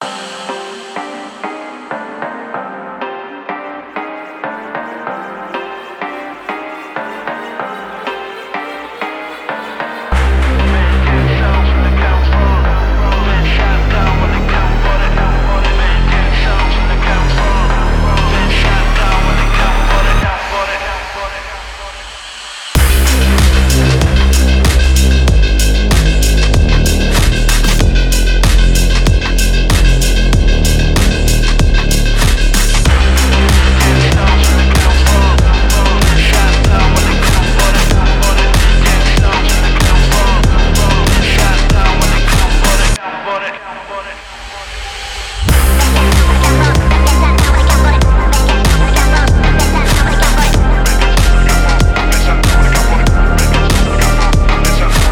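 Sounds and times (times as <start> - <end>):
emotional phonk house music: 0.0 - 55.1.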